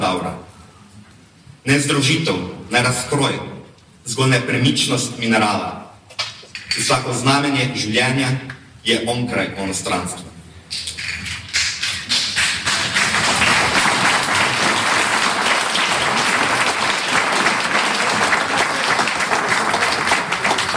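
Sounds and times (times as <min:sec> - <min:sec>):
speech: 0:01.6 - 0:05.8, 0:06.8 - 0:10.9
audience applause: 0:11.8 - 0:20.7.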